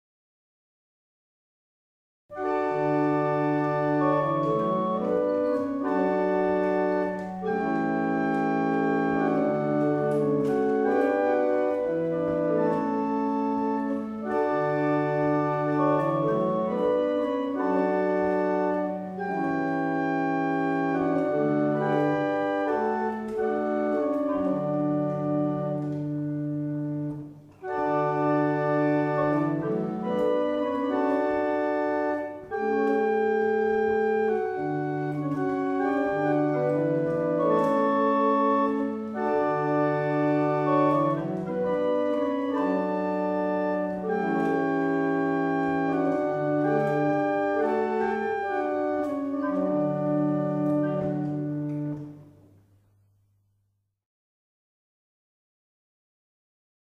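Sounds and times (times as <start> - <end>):
barrel organs playing a double chant: 2.3 - 52.2.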